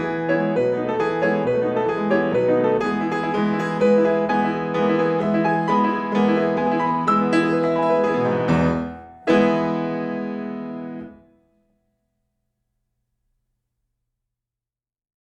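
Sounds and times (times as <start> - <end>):
piano piece: 0.0 - 11.7.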